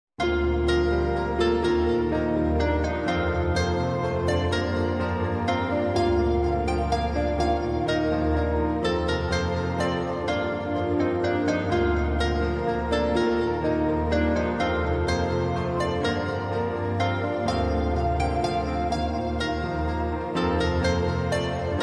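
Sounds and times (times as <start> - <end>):
music: 0.2 - 21.8.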